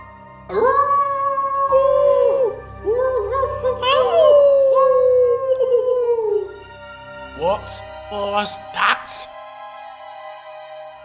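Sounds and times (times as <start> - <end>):
pack of wolves howling: 0.5 - 8.6
speech: 7.6 - 9.3.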